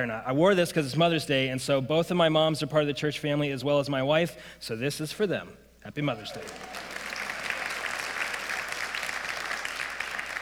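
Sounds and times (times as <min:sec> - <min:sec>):
speech: 0:00.0 - 0:06.9
crowd applauding: 0:06.2 - 0:10.4.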